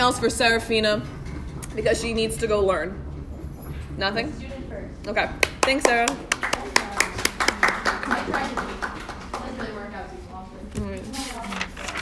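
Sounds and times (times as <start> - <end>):
speech: 0.1 - 1.2, 1.8 - 3.1, 4.0 - 6.8
clapping: 5.4 - 9.8.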